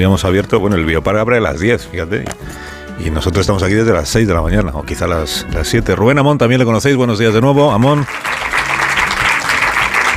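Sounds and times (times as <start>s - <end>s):
speech: 0.0s - 8.6s
audience applause: 7.8s - 10.1s.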